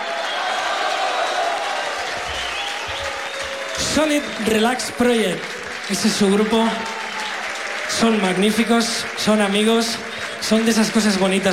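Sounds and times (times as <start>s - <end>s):
audience applause and cheering for a musician introduced on stage: 0.0s - 11.5s
speech: 4.0s - 6.9s, 8.0s - 11.5s.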